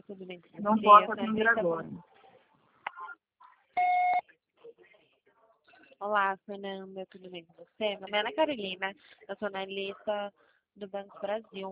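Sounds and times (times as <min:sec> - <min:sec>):
speech: 0:00.1 - 0:02.1, 0:06.0 - 0:11.7
voicemail beep before a message is recorded: 0:03.8 - 0:04.2.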